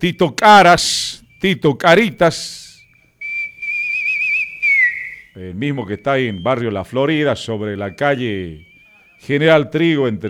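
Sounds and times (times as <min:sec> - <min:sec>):
speech: 0:00.0 - 0:02.6, 0:05.4 - 0:10.2
short whistle: 0:02.8 - 0:05.4, 0:08.6 - 0:09.4.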